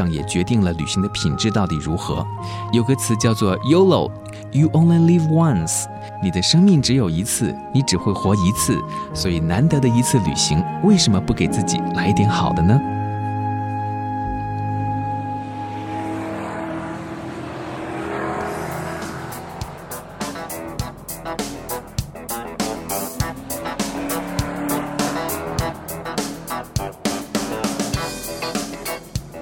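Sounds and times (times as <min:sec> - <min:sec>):
speech: 0:00.0 - 0:13.0
race car tires squealing: 0:13.7 - 0:29.0
race car engine revving: 0:14.3 - 0:29.4.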